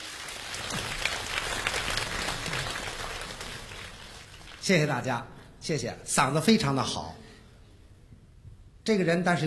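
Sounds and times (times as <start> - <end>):
audience applause at a comedy show welcoming a performer: 0.0 - 4.7
speech: 4.7 - 7.2, 8.8 - 9.4.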